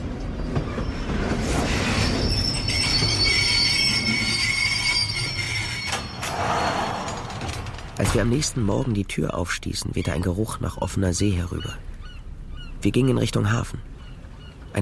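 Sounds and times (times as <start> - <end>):
train wheels rattling on the tracks: 0.0 - 8.7
speech: 8.1 - 11.9, 12.8 - 13.9.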